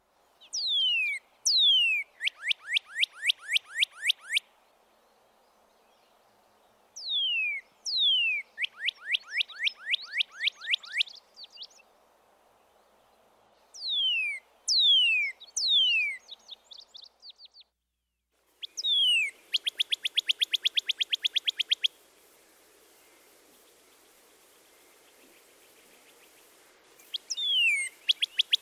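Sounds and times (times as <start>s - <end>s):
Northern Cardinal song: 0.4s - 4.5s, 7.0s - 11.9s, 13.8s - 17.7s, 18.6s - 22.0s, 23.0s - 28.5s.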